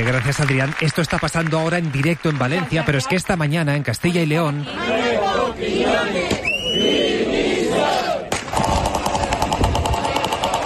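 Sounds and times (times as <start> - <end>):
speech: 0.0 - 8.0
fast regular beating: 8.4 - 10.6.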